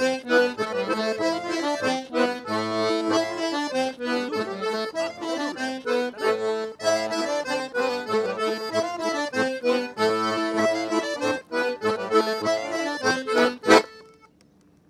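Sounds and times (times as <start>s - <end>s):
accordion at a festival: 0.0s - 14.4s.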